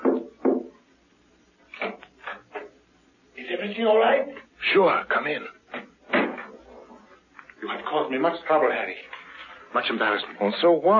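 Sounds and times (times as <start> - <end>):
soft hesitant knocking on a wooden door: 0.0 - 0.8
speech: 3.7 - 5.6, 7.9 - 9.1, 9.7 - 10.9.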